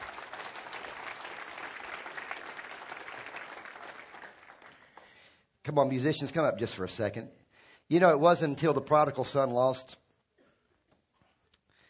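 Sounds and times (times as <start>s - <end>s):
audience clapping: 0.0s - 5.3s
speech: 5.7s - 10.0s.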